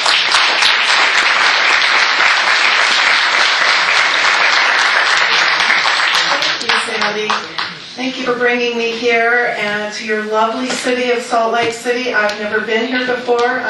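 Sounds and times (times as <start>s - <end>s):
audience applause welcoming a guest speaker in Salt Lake City: 0.0s - 7.8s
speech: 8.2s - 13.6s.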